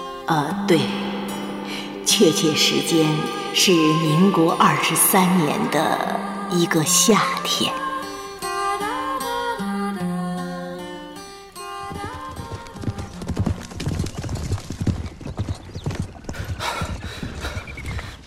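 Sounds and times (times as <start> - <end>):
music: 0.0 - 14.2
speech: 0.3 - 1.0, 2.1 - 7.9
ridden horses galloping: 11.9 - 18.2.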